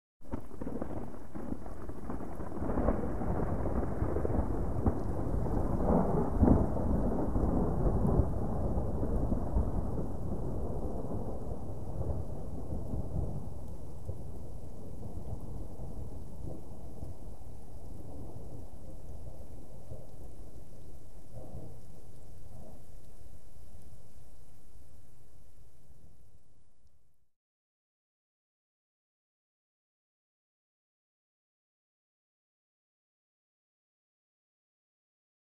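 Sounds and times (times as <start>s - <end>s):
receding thunder with soft crackle and rumble: 0.2s - 24.6s.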